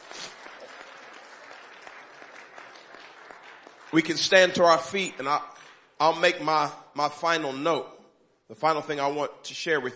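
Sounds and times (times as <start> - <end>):
audience clapping: 0.0 - 6.3
speech: 3.9 - 9.9.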